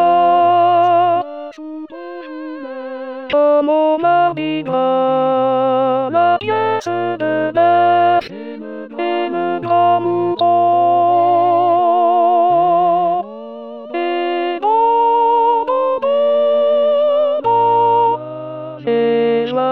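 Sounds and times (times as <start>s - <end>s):
alto: 0.0s - 19.7s.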